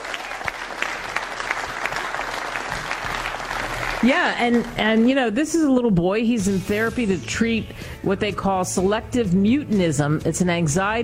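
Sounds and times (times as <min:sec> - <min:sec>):
applause: 0:00.0 - 0:04.8
speech: 0:04.0 - 0:11.0.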